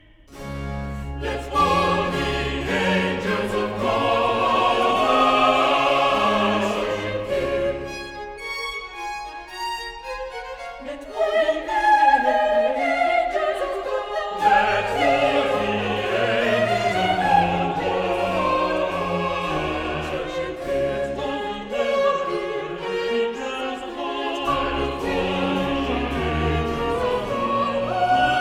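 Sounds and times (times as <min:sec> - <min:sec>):
chorus singing: 0:00.0 - 0:08.5, 0:10.8 - 0:28.3.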